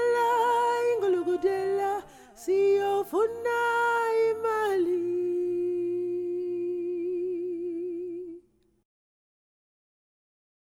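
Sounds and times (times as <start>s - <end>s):
soprano singing a song: 0.0s - 8.5s.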